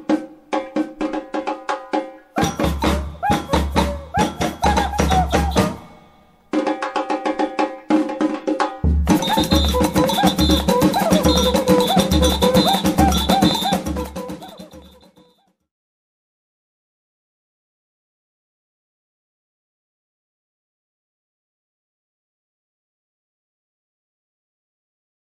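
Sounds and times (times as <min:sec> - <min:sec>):
samba music: 0:00.0 - 0:15.4.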